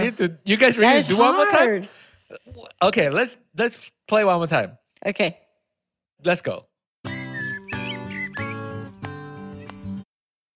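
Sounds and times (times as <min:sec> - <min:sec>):
speech: 0:00.1 - 0:05.4, 0:06.2 - 0:06.7
strummed musical track with low tones: 0:07.0 - 0:10.0
blackbird song and birds squeaking: 0:07.1 - 0:09.1.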